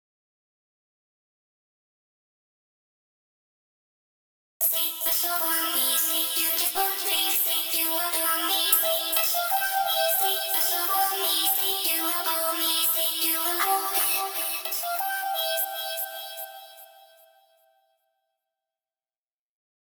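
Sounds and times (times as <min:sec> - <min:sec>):
vocal harmony: 0:04.6 - 0:17.0.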